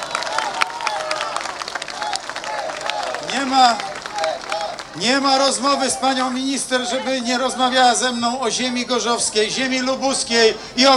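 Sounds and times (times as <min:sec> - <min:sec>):
person whooping: 0:00.0 - 0:07.6
audience applause: 0:00.0 - 0:10.9
laughter: 0:00.0 - 0:10.9
speech: 0:03.4 - 0:03.9, 0:05.0 - 0:10.9.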